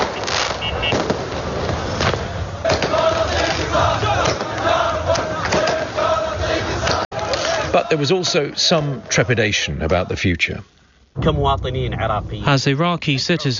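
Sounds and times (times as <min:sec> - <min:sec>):
fireworks and firecrackers at Sovereignty Day celebrations in Baghdad, Iraq: 0:00.0 - 0:06.0
crowd shouting and cheering in Baghdad: 0:02.4 - 0:10.2
speech: 0:07.9 - 0:13.5.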